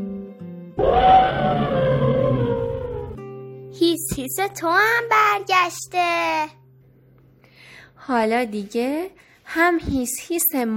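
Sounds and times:
elephant trumpeting: 0.8 - 3.2
speech: 4.2 - 6.6, 8.0 - 10.7.

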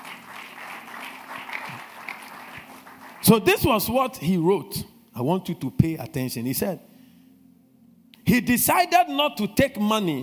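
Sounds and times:
audience clapping: 0.0 - 3.6
speech: 3.3 - 6.9, 8.3 - 10.2.

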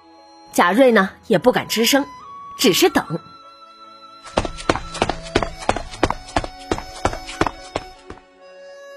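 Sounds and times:
speech: 0.6 - 3.3
footsteps: 4.3 - 8.2.

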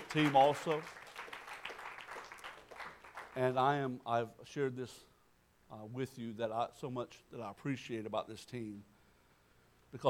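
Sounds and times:
crowd applauding: 0.0 - 3.6
speech: 0.1 - 1.0, 3.4 - 5.1, 5.7 - 8.9.

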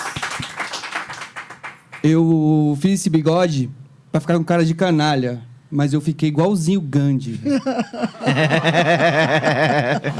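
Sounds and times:
small audience clapping: 0.0 - 2.2
speech: 2.0 - 10.1
laughter: 7.4 - 10.1.

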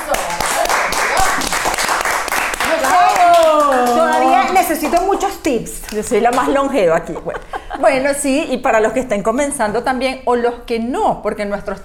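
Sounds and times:
applause: 0.0 - 5.2
speech: 4.8 - 11.8.

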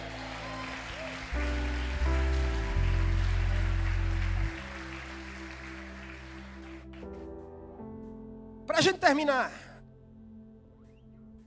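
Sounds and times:
audience applause: 0.0 - 7.0
speech: 8.8 - 9.6.

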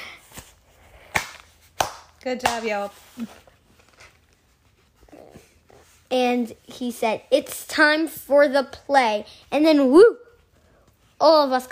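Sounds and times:
hand claps: 1.1 - 2.7
speech: 2.2 - 3.5, 6.1 - 10.2, 11.2 - 11.6.

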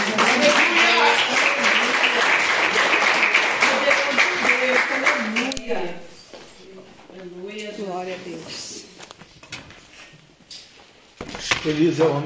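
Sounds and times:
crowd applauding: 0.0 - 5.6
speech: 11.6 - 12.2.

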